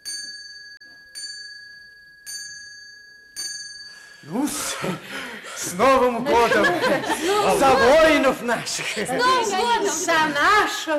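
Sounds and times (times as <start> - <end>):
pencil tapping a glass ornament: 0.0 - 4.3
speech: 4.2 - 10.9
laughter: 4.7 - 10.8.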